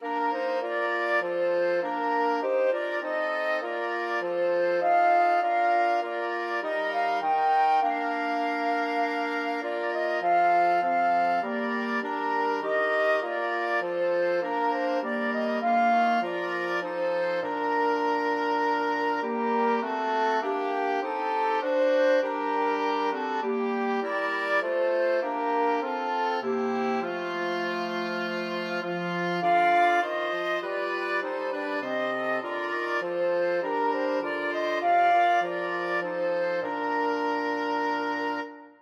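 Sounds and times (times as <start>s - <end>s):
flexible mixed ensemble of four players: 0.0s - 38.6s.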